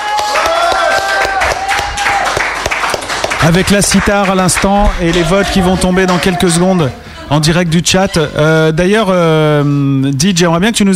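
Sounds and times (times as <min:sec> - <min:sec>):
audience applause: 0:00.0 - 0:07.0
speech: 0:03.4 - 0:10.9.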